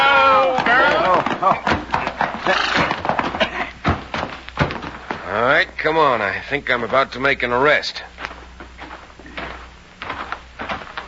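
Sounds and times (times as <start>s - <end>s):
hooves clopping and stamping: 0.0s - 11.0s
horse whinnying with a high wavering neigh: 0.2s - 3.7s
speech: 1.4s - 1.7s, 6.5s - 8.1s
horse snorting: 1.8s - 3.8s.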